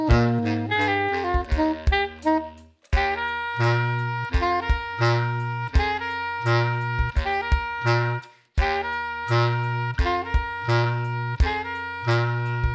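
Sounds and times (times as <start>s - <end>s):
drum and folk music: 0.0s - 12.7s.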